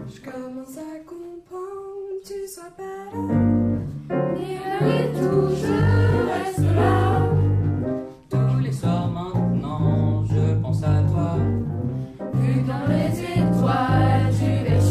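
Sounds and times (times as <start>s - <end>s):
jazz music: 3.2s - 14.8s.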